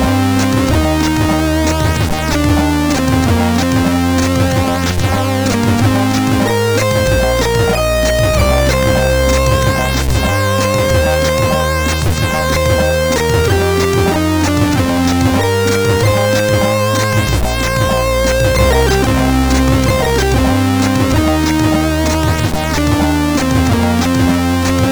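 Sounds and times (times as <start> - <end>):
old music on CSG8580R5 sound chip: 0.0 - 24.9.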